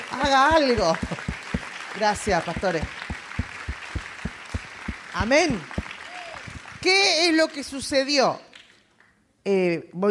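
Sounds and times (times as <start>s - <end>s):
audience applause: 0.0s - 6.9s
speech: 0.2s - 1.3s, 2.0s - 3.0s, 5.2s - 5.8s, 6.8s - 8.5s, 9.4s - 10.0s.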